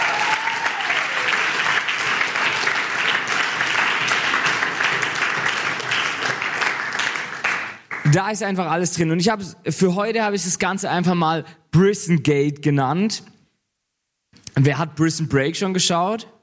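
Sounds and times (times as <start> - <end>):
crowd applauding: 0.0 - 8.2
speech: 8.1 - 13.3, 14.6 - 16.4.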